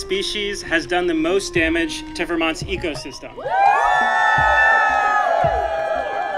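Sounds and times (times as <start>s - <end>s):
speech: 0.1s - 4.6s
crowd cheering for a vote: 3.4s - 6.3s.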